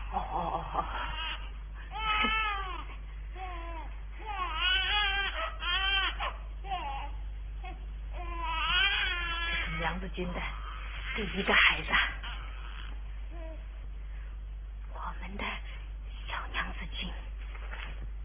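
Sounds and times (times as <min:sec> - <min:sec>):
newborn baby crying after birth: 0:00.0 - 0:13.6
low steady hum: 0:00.0 - 0:18.2
speech: 0:02.2 - 0:02.4, 0:10.1 - 0:10.6, 0:11.2 - 0:12.2.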